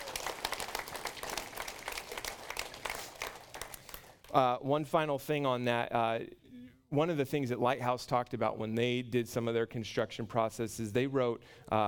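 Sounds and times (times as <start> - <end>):
audience applause: 0.0 - 4.2
speech: 4.4 - 11.8.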